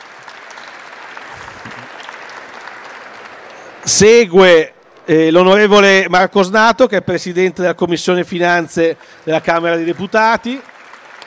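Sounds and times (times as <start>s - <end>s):
audience applause: 0.0s - 4.4s, 8.4s - 11.2s
speech: 3.8s - 10.7s.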